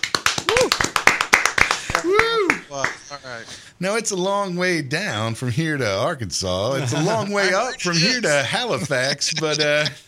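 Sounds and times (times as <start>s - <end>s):
small group round of applause: 0.0s - 3.1s
people whooping and cheering: 0.4s - 0.9s, 2.0s - 2.7s
speech: 2.7s - 10.0s
laughter: 6.7s - 10.0s.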